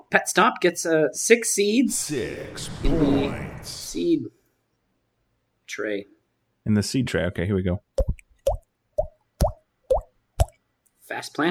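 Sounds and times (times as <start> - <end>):
speech: 0.1 - 4.4, 5.7 - 8.2, 11.2 - 11.4
water drops falling into a glass: 8.0 - 10.6.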